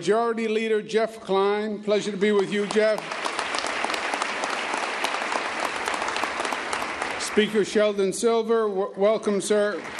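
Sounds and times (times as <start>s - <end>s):
speech: 0.0s - 3.3s, 7.4s - 9.9s
crowd applause for Majority Leader Dean Skelos: 2.4s - 8.1s, 9.5s - 9.9s.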